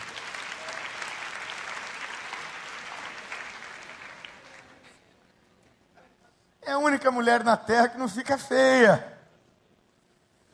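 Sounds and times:
audience applause: 0.0s - 4.8s
speech: 6.7s - 9.1s.

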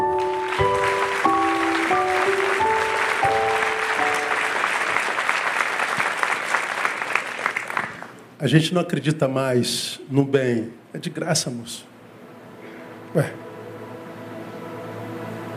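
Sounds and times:
audience applause: 0.0s - 8.2s
speech: 8.4s - 11.9s, 13.1s - 13.4s.

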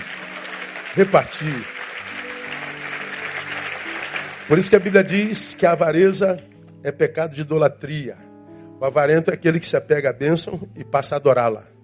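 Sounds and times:
audience applauding: 0.0s - 5.8s
speech: 1.0s - 1.8s, 4.5s - 8.2s, 8.8s - 11.7s.

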